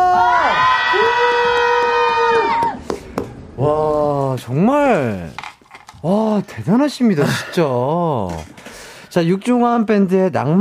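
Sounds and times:
audience cheering and shouting: 0.0s - 2.8s
speech: 4.5s - 5.4s, 6.0s - 8.6s, 9.2s - 10.5s.

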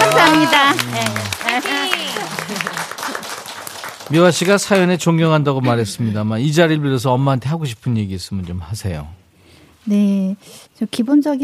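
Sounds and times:
laughter: 0.0s - 3.3s, 4.4s - 7.2s
audience applause: 0.0s - 5.6s
speech: 4.1s - 9.2s, 9.8s - 11.4s.

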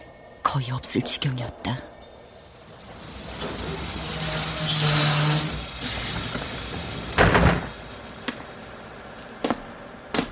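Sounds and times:
speech: 0.5s - 1.9s
train rumbling to a stop: 2.6s - 9.1s.

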